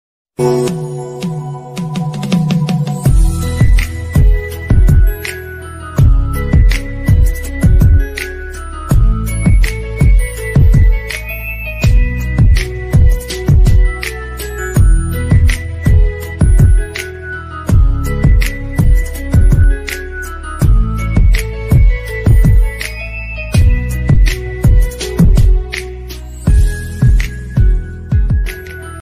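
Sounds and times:
instrumental ringtone: 2.3s - 29.0s.

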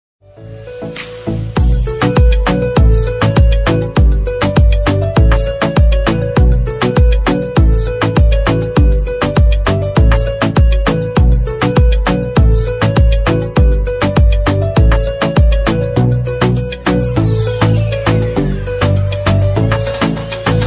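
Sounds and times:
romantic instrumental ringtone: 0.3s - 20.6s.

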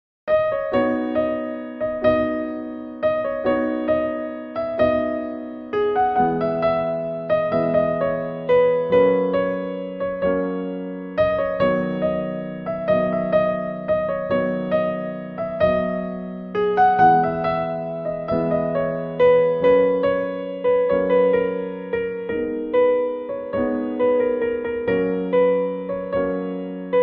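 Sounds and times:
piano ringtone: 0.3s - 27.0s.

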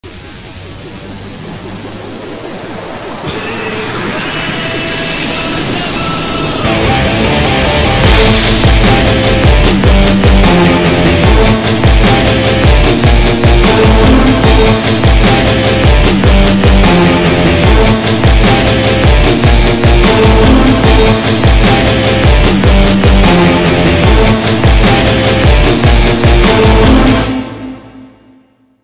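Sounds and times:
entry background music: 0.1s - 28.8s.

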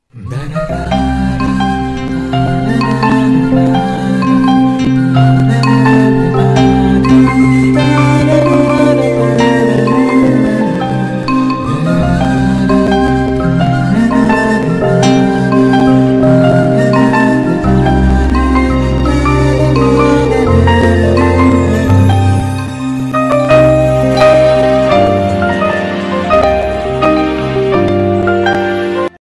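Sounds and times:
Tamil romantic background music: 0.3s - 29.2s.

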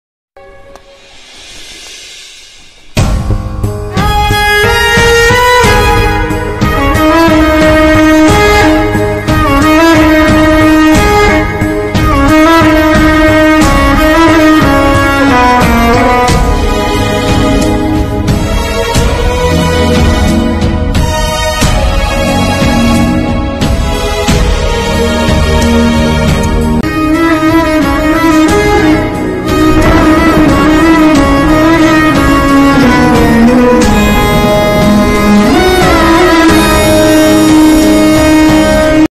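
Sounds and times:
sad background music ringtone: 2.9s - 39.0s.

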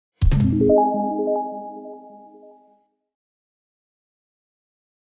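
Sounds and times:
old instrumental ringtone: 0.5s - 2.9s.

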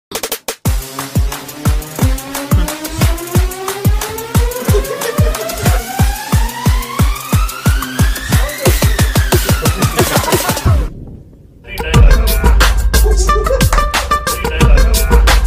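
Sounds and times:
film background music: 0.2s - 10.9s, 11.7s - 15.4s
laughter: 1.9s - 6.6s, 8.4s - 10.9s.

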